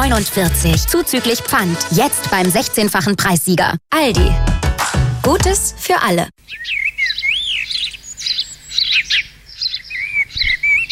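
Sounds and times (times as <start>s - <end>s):
speech: 0.1s - 4.6s, 5.2s - 6.8s
birds chirping: 6.4s - 10.9s.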